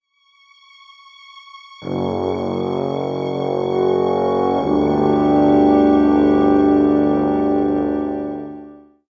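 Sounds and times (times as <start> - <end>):
foreboding medieval music: 1.8 - 8.7.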